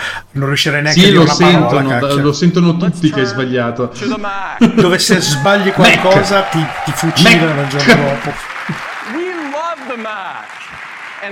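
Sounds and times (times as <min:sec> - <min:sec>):
speech: 0:00.4 - 0:10.6
laughter: 0:03.9 - 0:09.2
audience applause: 0:05.2 - 0:11.3.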